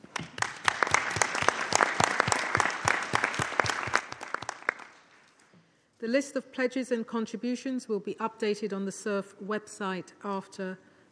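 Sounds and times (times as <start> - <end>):
audience applause: 0.0 - 5.0
speech: 6.0 - 10.9.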